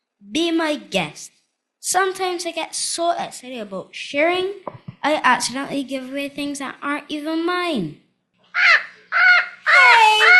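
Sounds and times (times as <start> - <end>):
speech: 0.2 - 8.0
pet parrot squawking: 8.6 - 10.3.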